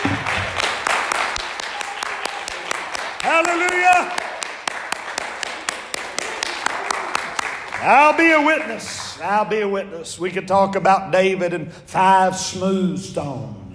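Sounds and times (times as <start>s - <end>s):
audience clapping hands: 0.0s - 9.3s
speech: 3.4s - 4.2s, 7.8s - 13.6s.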